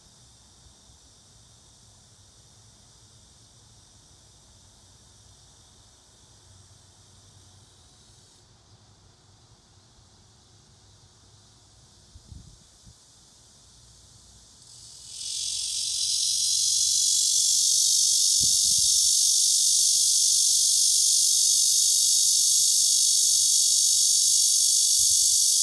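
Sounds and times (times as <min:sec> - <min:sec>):
cicada buzzing: 0:12.8 - 0:25.6.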